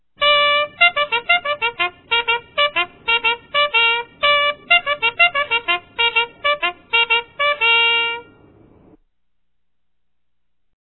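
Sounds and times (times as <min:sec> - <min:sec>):
soldier bugles playing: 0:00.2 - 0:08.5.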